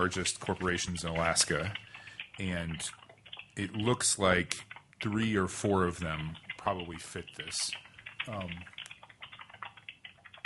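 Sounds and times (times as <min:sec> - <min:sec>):
speech: 0:00.0 - 0:03.0, 0:03.6 - 0:08.8
computer keyboard typing: 0:00.0 - 0:10.4.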